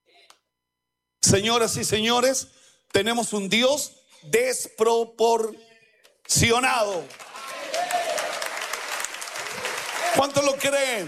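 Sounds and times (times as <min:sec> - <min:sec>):
speech: 0:01.3 - 0:05.7, 0:06.3 - 0:07.2, 0:10.2 - 0:11.0
audience applauding: 0:06.8 - 0:11.0.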